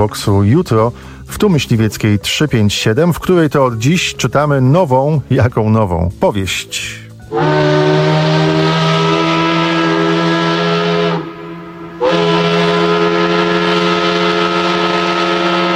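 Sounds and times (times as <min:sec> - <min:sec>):
speech: 0:00.0 - 0:08.6
factory steam whistle in Łódź in the early morning: 0:07.2 - 0:15.7.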